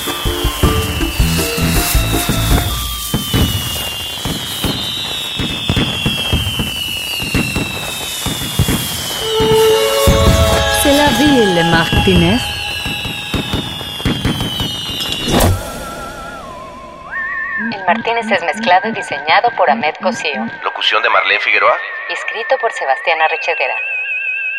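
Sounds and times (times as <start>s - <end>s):
fireworks sound effect popping and crackling: 0.0s - 11.2s, 12.0s - 15.6s
whistling rockets: 0.0s - 19.1s
speech: 11.6s - 12.5s, 17.9s - 24.0s.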